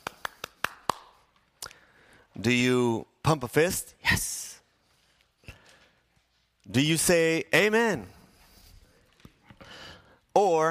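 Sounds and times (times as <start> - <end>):
hand claps: 0.0 - 1.4
speech: 2.4 - 4.5, 6.7 - 8.2, 10.4 - 10.6.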